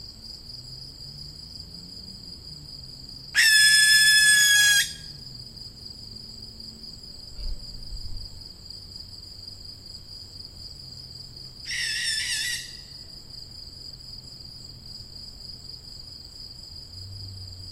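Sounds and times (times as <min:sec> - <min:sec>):
young barn owl hissing screech: 0:03.4 - 0:05.0, 0:11.7 - 0:12.9.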